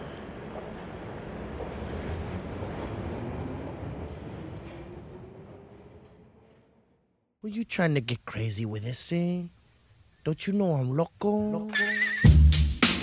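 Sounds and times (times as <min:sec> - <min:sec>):
underground train arriving at a station: 0:00.0 - 0:07.1
speech: 0:07.4 - 0:09.6, 0:10.2 - 0:12.0.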